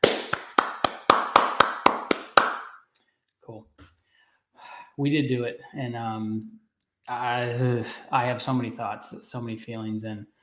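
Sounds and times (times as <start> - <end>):
hand claps in celebration of a Raiders victory: 0.0 - 2.9
speech: 5.0 - 10.4.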